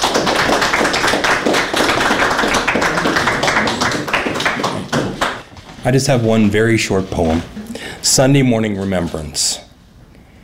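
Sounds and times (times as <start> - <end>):
audience clapping: 0.0 - 5.6
speech: 5.8 - 9.6.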